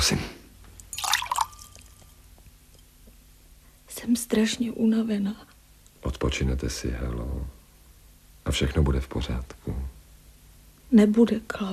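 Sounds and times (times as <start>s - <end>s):
speech: 0.0s - 0.4s, 4.0s - 7.6s, 8.5s - 10.0s, 10.9s - 11.7s
water poured into a glass: 0.9s - 2.1s.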